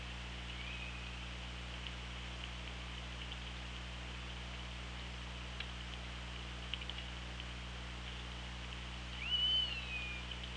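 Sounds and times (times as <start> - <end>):
background hiss and hum: 0.0 - 10.5
killer whale whistling call: 9.2 - 10.2.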